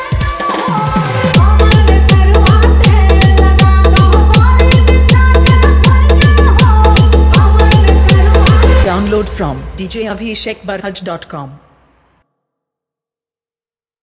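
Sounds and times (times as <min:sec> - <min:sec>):
EDM mix: 0:00.0 - 0:10.9.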